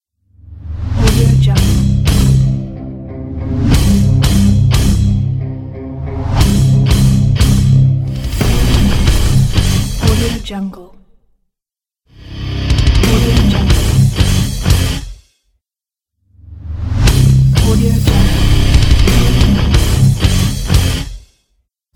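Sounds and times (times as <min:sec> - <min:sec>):
hard energy metal guitar rock logo: 0:00.6 - 0:10.4, 0:12.6 - 0:15.1, 0:16.8 - 0:21.1.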